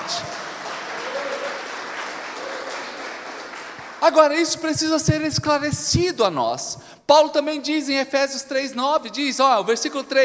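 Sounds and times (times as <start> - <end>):
audience applauding loudly: 0.0 - 4.6
speech: 4.0 - 10.2.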